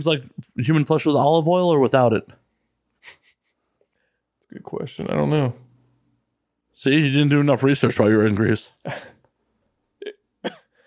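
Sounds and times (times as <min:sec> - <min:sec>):
speech: 0:00.0 - 0:02.4, 0:04.5 - 0:05.6, 0:06.8 - 0:09.1
person coughing into the microphone: 0:10.4 - 0:10.7.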